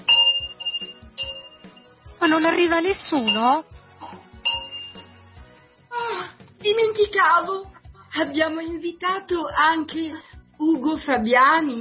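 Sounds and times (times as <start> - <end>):
clock striking the hour: 0.1 - 1.8
speech: 2.2 - 3.7, 7.0 - 11.7.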